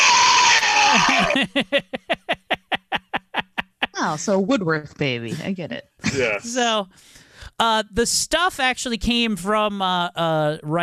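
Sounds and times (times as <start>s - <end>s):
echoing evil monster baby cry: 0.0s - 1.4s
laughter: 0.5s - 4.4s, 6.0s - 6.5s
speech: 0.9s - 2.2s, 4.0s - 10.8s.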